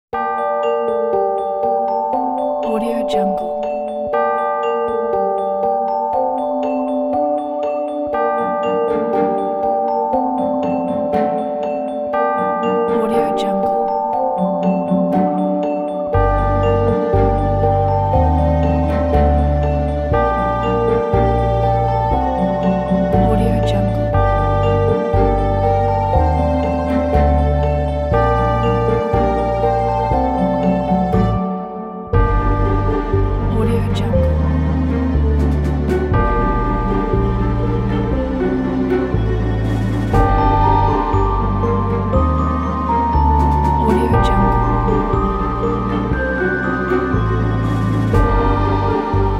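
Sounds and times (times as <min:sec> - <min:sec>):
halloween midnight bells ringing: 0:00.2 - 0:35.4, 0:36.1 - 0:49.2.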